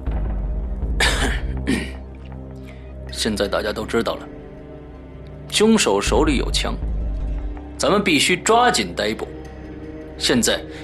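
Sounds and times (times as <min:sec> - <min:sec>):
low tone: 0:00.0 - 0:10.8
male police leader coughing lightly in a crime audio drama: 0:01.0 - 0:02.0
speech: 0:03.2 - 0:04.4, 0:05.5 - 0:06.9, 0:07.8 - 0:09.4, 0:10.2 - 0:10.8.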